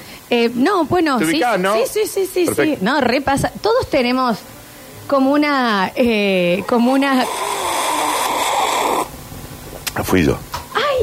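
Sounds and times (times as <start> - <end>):
speech: 0.3 - 7.4, 10.0 - 11.0
slurping sip of water: 7.1 - 9.1.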